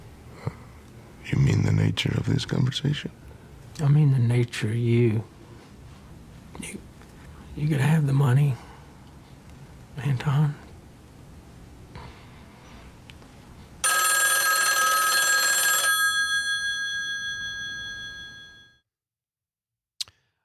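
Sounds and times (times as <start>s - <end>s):
speech: 1.3s - 5.4s, 7.6s - 8.6s, 10.0s - 10.6s
telephone ringing: 13.8s - 18.8s.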